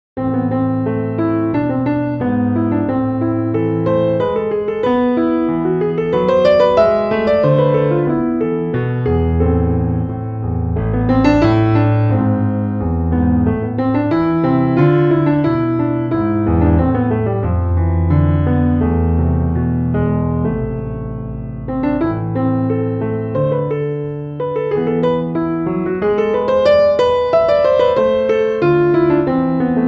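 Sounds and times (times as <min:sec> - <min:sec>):
neo-baroque music: 0:00.2 - 0:29.8.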